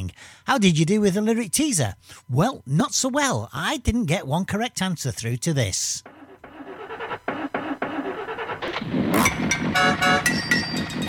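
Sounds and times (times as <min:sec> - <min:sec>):
speech: 0:00.1 - 0:06.2
old car engine struggling to start: 0:06.0 - 0:11.0.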